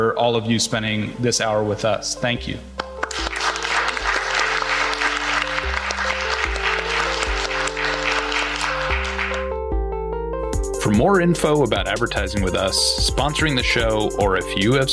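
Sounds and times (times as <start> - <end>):
speech: 0.0 - 3.2, 10.9 - 14.9
sustained music chords: 2.8 - 14.0
audience round of applause: 3.0 - 9.5.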